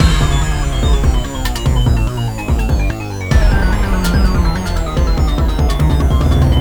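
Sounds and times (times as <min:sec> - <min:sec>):
musical stinger: 0:00.0 - 0:06.6.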